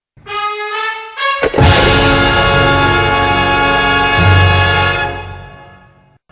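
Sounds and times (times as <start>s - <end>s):
musical stinger: 1.2s - 5.9s.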